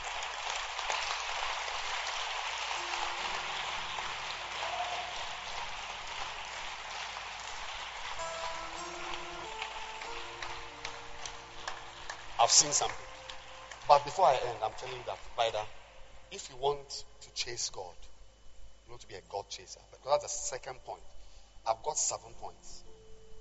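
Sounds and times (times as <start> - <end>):
audience clapping hands: 0.0 - 15.8
faint sustained musical tones: 2.0 - 23.3
speech: 12.5 - 13.0, 13.9 - 18.1, 18.9 - 22.9.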